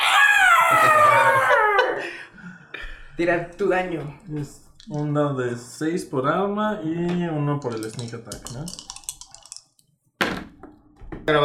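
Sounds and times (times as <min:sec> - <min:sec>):
spectre's horrifying shriek: 0:00.0 - 0:02.0
speech: 0:03.2 - 0:08.9, 0:11.3 - 0:11.4.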